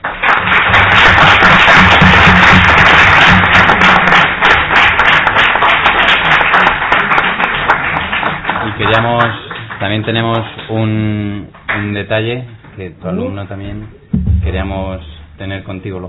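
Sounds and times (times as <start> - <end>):
crowd applauding: 0.0 - 10.7
speech: 9.2 - 16.0.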